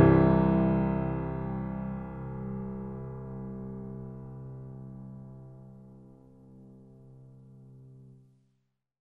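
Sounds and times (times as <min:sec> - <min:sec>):
grand piano playing: 0:00.0 - 0:05.8.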